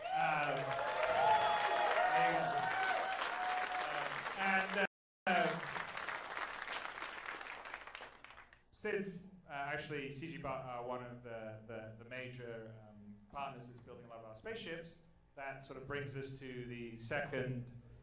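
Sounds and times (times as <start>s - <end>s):
cheering and voices: 0.0s - 5.6s
audience applause: 0.0s - 8.5s
speech: 8.8s - 17.8s.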